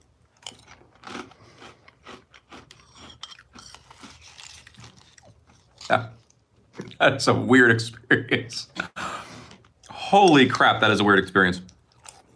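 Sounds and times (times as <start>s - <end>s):
chewing crunchy breakfast cereal: 0.0s - 7.0s, 9.3s - 10.1s, 11.6s - 12.3s
speech: 5.9s - 6.2s, 7.0s - 8.8s, 10.1s - 11.7s.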